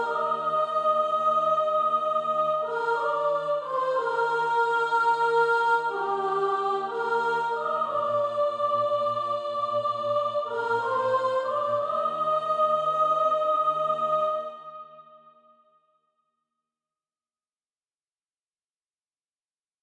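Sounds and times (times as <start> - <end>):
soprano singing: 0.0 - 14.9.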